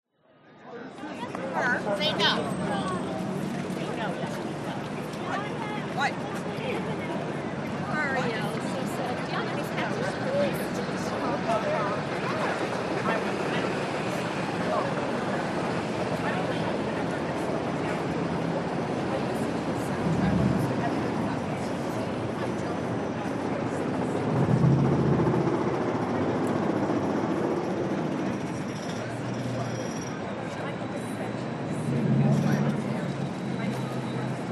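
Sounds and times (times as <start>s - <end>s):
people chatting in Times Square NYC: 0.5s - 34.5s
city hum in Times Square NYC daytime: 0.7s - 34.5s.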